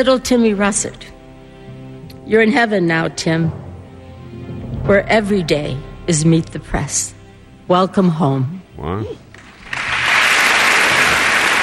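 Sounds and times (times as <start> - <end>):
speech: 0.0 - 1.1, 2.3 - 3.6, 4.8 - 9.2
audience clapping: 9.3 - 11.6.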